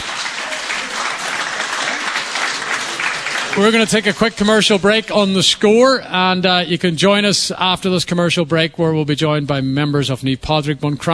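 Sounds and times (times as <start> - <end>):
audience applause: 0.0 - 5.0
speech: 3.6 - 11.1.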